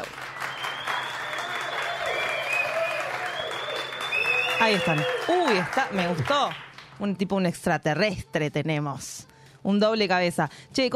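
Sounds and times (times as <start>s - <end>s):
audience applause: 0.0s - 6.9s
speech: 4.6s - 10.9s.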